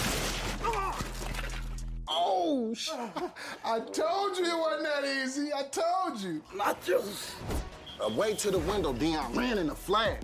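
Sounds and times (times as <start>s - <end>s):
snack table shattering: 0.0s - 1.8s
speech: 2.7s - 10.2s.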